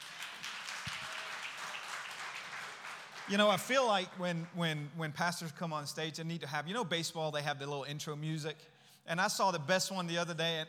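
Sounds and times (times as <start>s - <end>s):
audience applause welcoming a speaker on stage: 0.0s - 4.5s
speech: 3.3s - 10.6s.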